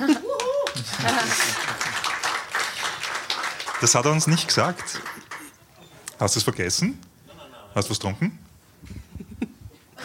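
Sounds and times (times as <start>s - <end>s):
laughter: 0.0s - 2.1s, 7.2s - 7.9s
hand clapping: 0.3s - 5.6s
speech: 1.0s - 1.6s, 3.8s - 5.1s, 6.2s - 7.1s, 7.7s - 9.0s.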